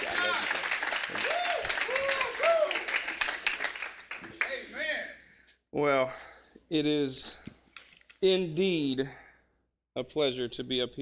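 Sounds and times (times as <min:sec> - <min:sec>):
audience clapping hands in praise: 0:00.0 - 0:05.0
people calling out and cheering: 0:00.0 - 0:05.2
speech: 0:05.7 - 0:07.4, 0:08.2 - 0:09.2, 0:10.0 - 0:11.0.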